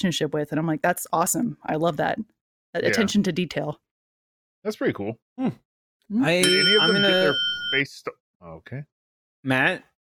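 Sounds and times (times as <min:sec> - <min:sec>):
speech: 0:00.0 - 0:03.8, 0:04.6 - 0:09.9
high-pitched bell ringing: 0:06.4 - 0:07.9.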